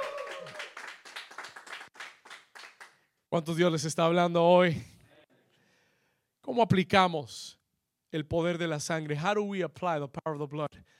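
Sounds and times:
audience applause: 0:00.0 - 0:02.9
speech: 0:03.3 - 0:04.9, 0:06.5 - 0:07.4, 0:08.1 - 0:10.9.

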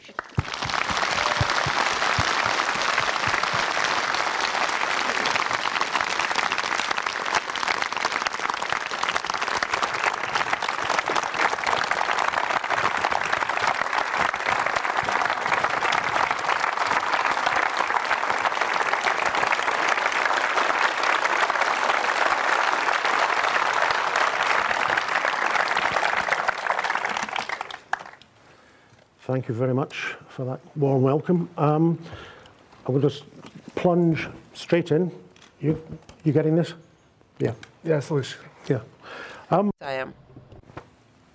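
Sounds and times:
audience applause: 0:00.0 - 0:28.3
speech: 0:29.3 - 0:32.3, 0:32.9 - 0:36.8, 0:37.4 - 0:38.9, 0:39.5 - 0:39.7.

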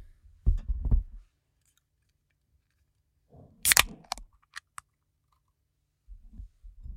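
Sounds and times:
drink can being cracked open: 0:03.6 - 0:04.8.

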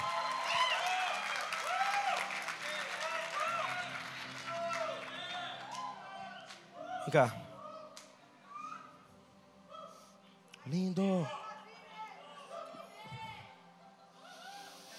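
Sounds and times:
audience applause: 0:00.0 - 0:07.3
speech: 0:07.1 - 0:07.4, 0:10.7 - 0:11.4.

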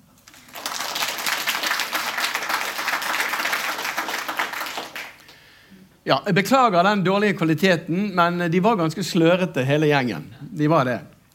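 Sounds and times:
group applauding: 0:00.2 - 0:05.6
speech: 0:06.1 - 0:11.1.

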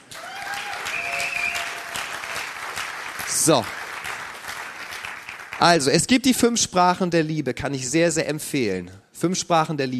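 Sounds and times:
crowd clapping: 0:00.0 - 0:06.0
speech: 0:03.4 - 0:03.8, 0:05.6 - 0:09.9.

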